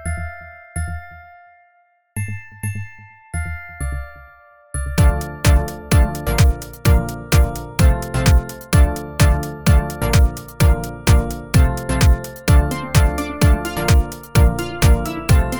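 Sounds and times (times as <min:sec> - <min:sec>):
glockenspiel: 0:00.0 - 0:15.5
deep house mix: 0:05.0 - 0:15.5.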